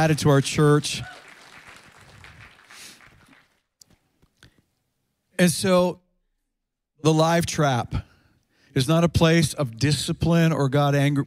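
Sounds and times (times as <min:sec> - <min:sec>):
speech: 0:00.0 - 0:01.1, 0:05.4 - 0:06.0, 0:07.0 - 0:08.1, 0:08.7 - 0:11.2
audience clapping: 0:00.0 - 0:03.8.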